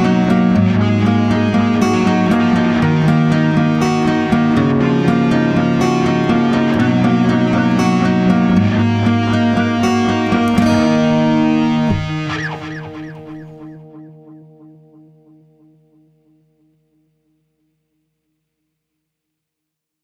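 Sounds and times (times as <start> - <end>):
electric guitar: 0.0 - 17.8.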